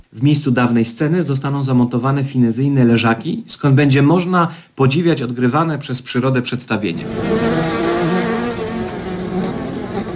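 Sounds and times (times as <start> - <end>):
speech: 0.1 - 7.7
many bees buzzing: 7.0 - 10.1.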